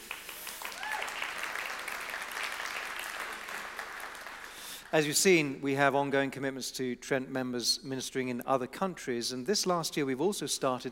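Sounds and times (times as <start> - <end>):
audience applause: 0.0 - 5.1
speech: 4.9 - 10.8.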